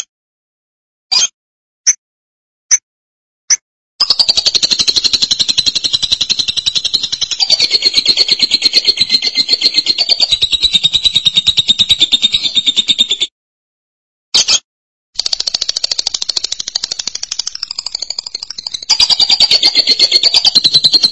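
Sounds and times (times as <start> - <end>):
lovebird rattling trill: 4.0 - 13.3, 15.2 - 21.1.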